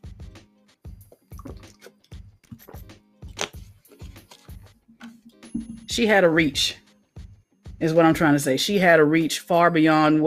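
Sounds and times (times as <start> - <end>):
gulping swallows of water: 1.2 - 2.1
water pouring: 1.3 - 2.0
speech: 6.0 - 6.8, 7.8 - 10.2.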